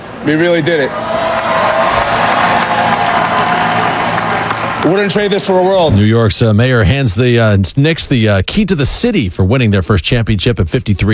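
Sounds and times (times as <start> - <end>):
large crowd cheering at parade: 0.0 - 6.0
speech: 0.2 - 1.2, 4.8 - 11.1
crowd clapping: 1.1 - 5.8.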